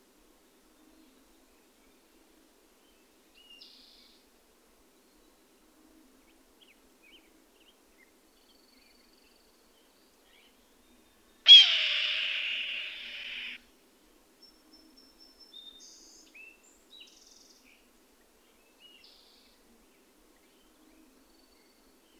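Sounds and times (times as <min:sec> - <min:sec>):
bird rasping screech: 0:11.5 - 0:13.6.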